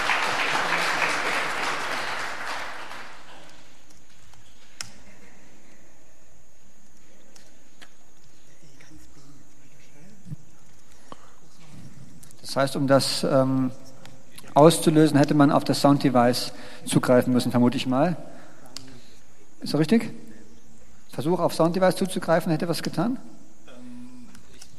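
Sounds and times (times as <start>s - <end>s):
audience applause: 0.0s - 3.8s
speech: 12.5s - 13.8s, 14.6s - 18.3s, 19.6s - 20.2s, 21.1s - 23.4s.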